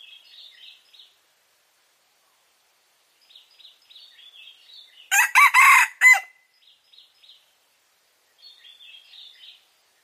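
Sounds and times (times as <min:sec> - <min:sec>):
red junglefowl crowing: 0:05.1 - 0:06.4.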